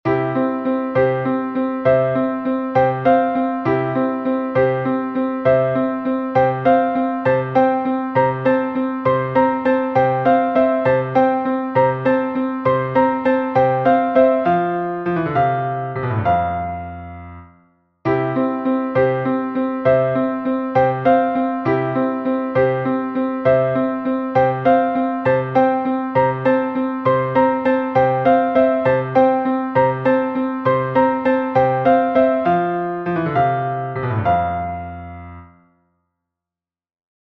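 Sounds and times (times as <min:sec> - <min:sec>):
piano score: 0:00.0 - 0:35.7.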